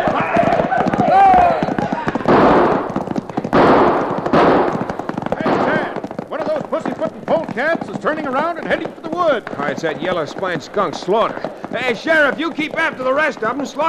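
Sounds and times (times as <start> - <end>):
people shouting: 0.0 - 3.0
rapid volleys of gunfire from a posse shootout: 0.0 - 6.1
speech: 8.0 - 13.8.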